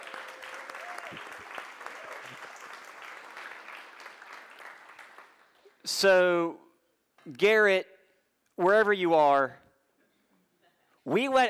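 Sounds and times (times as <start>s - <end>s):
audience applause: 0.0s - 5.8s
speech: 1.1s - 1.3s, 5.9s - 6.6s, 7.2s - 7.9s, 8.6s - 9.6s, 11.1s - 11.4s.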